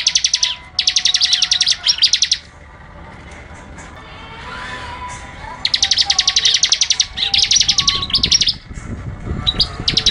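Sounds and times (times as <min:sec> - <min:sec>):
bar-winged prinia singing rapid machine-gun trills: 0:00.0 - 0:02.5, 0:05.6 - 0:10.0.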